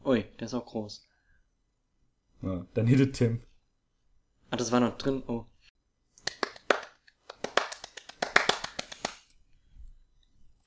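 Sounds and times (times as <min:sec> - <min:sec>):
speech: 0:00.1 - 0:01.1, 0:02.4 - 0:03.5, 0:04.5 - 0:05.5
hand clapping applause: 0:06.2 - 0:09.3.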